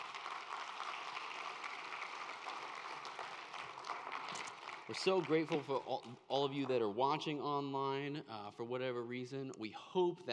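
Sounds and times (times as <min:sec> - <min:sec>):
audience hand clapping: 0:00.0 - 0:06.8
speech: 0:04.9 - 0:10.3.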